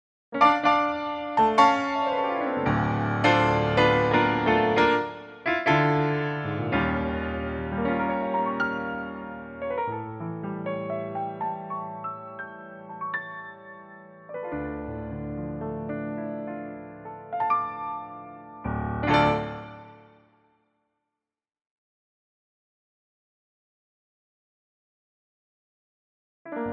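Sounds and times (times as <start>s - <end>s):
music without violin intro: 0.3s - 21.0s, 26.5s - 26.7s.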